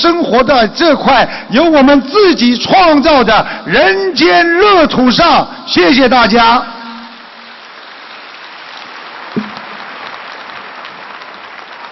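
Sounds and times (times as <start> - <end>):
speech: 0.0 - 6.8
audience applause: 7.5 - 11.8.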